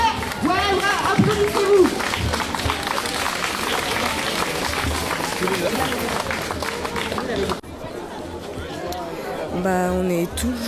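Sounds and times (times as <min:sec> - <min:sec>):
crowd cheering at climate march: 0:00.1 - 0:07.6
speech: 0:09.6 - 0:10.6.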